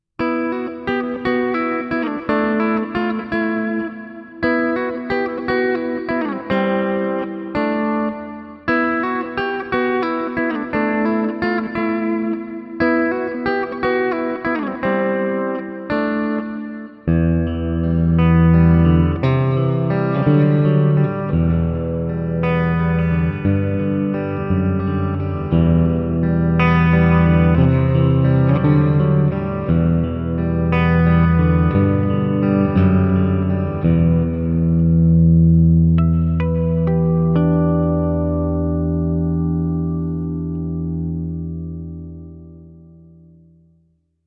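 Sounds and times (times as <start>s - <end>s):
acoustic music: 0.2s - 43.7s.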